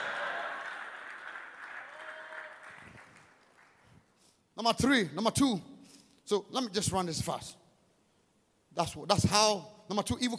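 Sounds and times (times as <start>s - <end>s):
audience clapping: 0.0s - 4.2s
speech: 4.6s - 5.7s, 6.3s - 7.6s, 8.8s - 10.3s.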